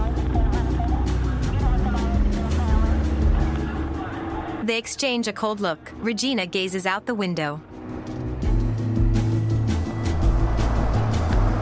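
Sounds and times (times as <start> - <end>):
car engine rumbling driving through the city: 0.0 - 4.6, 7.8 - 11.6
speech: 4.7 - 7.8.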